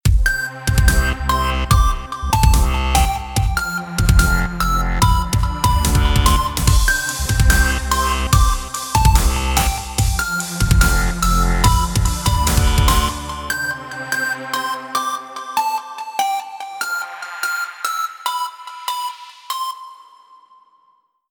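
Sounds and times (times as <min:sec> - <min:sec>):
ringtone: 0:00.3 - 0:21.1.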